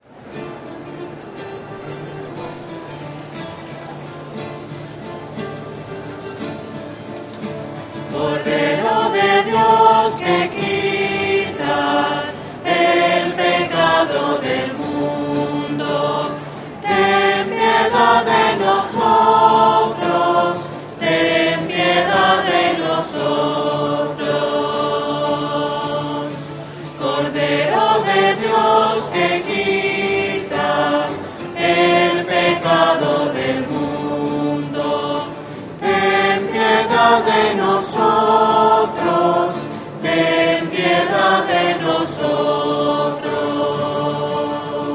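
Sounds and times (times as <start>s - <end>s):
voices singing: 7.7s - 44.9s.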